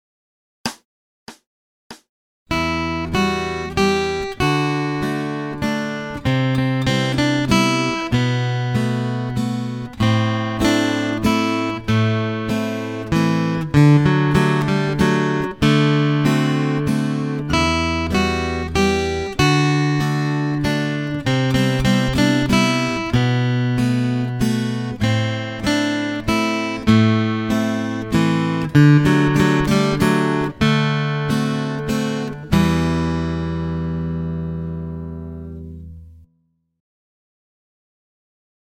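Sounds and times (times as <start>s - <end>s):
acoustic guitar accompaniment: 2.5s - 36.3s.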